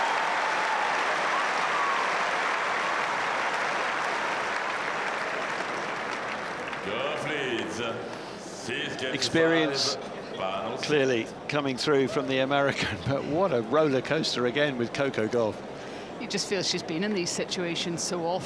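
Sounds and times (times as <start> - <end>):
tennis crowd applauding and cheering: 0.0 - 7.8
speech: 6.8 - 18.4.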